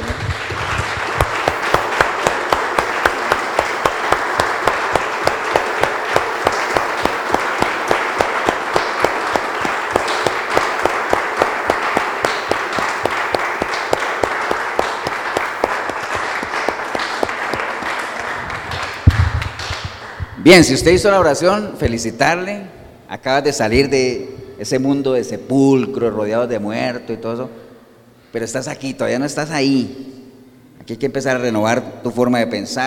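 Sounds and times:
audience applause: 0.0 - 20.3
speech: 20.5 - 27.6, 28.3 - 30.1, 30.9 - 32.8.

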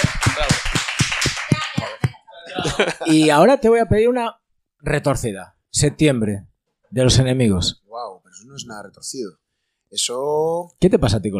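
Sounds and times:
applause: 0.0 - 2.2
laughter: 1.4 - 3.3
speech: 2.8 - 11.3.

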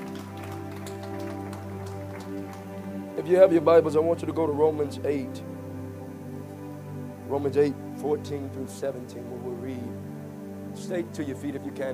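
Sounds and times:
crowd clapping hands: 0.0 - 3.2
sustained low musical chord: 0.0 - 11.9
speech: 3.2 - 5.6, 7.3 - 10.1, 10.8 - 11.9.

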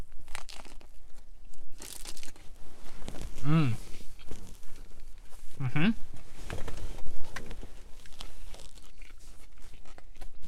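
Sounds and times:
crinkling and tearing: 0.0 - 3.4, 8.0 - 10.4
biting into a pre-made Italian sub sandwich: 0.0 - 5.1, 7.3 - 10.4.

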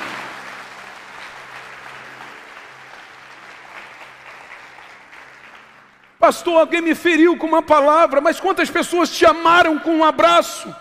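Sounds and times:
audience applause: 0.0 - 6.2
speech: 6.2 - 10.8.

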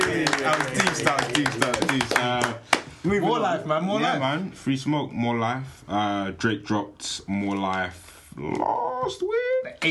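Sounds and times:
hand clapping: 0.0 - 3.0
speech: 0.4 - 9.9.

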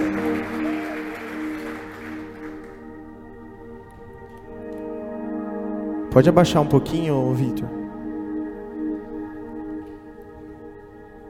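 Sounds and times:
audience applauding: 0.0 - 3.2
sustained keyboard chords: 0.0 - 11.2
speech: 6.1 - 7.8.

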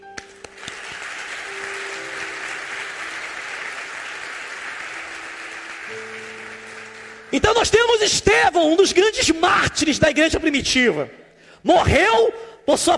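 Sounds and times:
audience applause: 0.2 - 7.5
speech: 7.3 - 12.9.

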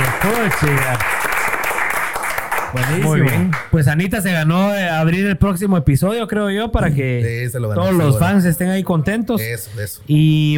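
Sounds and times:
applause: 0.0 - 3.7
speech: 0.2 - 1.3, 2.7 - 10.5.

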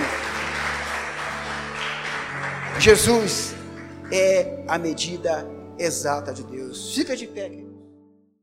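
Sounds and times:
audience applause: 0.0 - 4.4
speech: 2.8 - 7.7.

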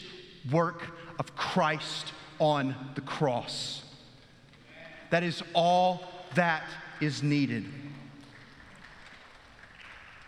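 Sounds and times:
speech: 0.4 - 3.8, 5.1 - 8.0
weak audience clapping: 7.9 - 10.2.

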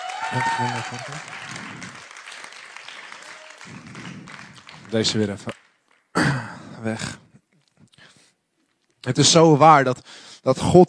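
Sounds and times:
audience applause: 0.0 - 6.1
speech: 0.3 - 1.8, 4.9 - 5.5, 6.8 - 7.2, 9.0 - 10.8.

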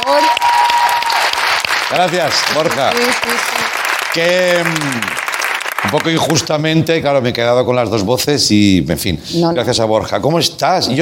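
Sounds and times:
audience applause: 0.0 - 6.7
speech: 1.9 - 5.2, 5.8 - 11.0.

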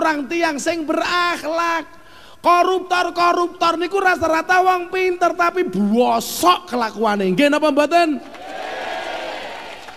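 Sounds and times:
speech: 0.1 - 8.4
audience clapping: 8.2 - 9.9.

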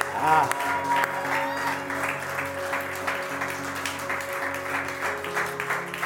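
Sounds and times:
large crowd clapping hands: 0.0 - 6.0.

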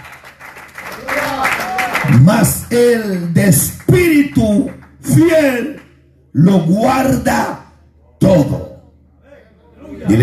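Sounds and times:
group clapping: 0.0 - 6.0
speech: 2.2 - 7.6, 8.3 - 8.6.

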